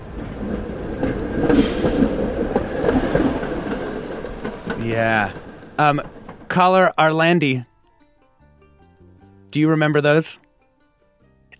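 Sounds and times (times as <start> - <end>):
San Francisco cable car clattering along its track: 0.0 - 7.4
speech: 4.9 - 7.7, 9.5 - 10.4.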